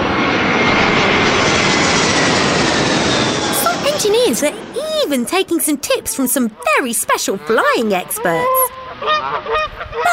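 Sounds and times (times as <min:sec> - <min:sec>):
jet aircraft engine roar: 0:00.0 - 0:10.1
speech: 0:04.4 - 0:10.1.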